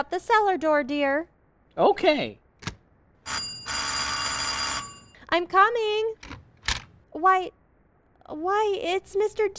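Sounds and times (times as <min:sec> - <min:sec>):
speech: 0:00.0 - 0:02.4, 0:05.3 - 0:06.4, 0:07.1 - 0:07.6, 0:08.3 - 0:09.5
doorbell ringing: 0:03.3 - 0:05.2.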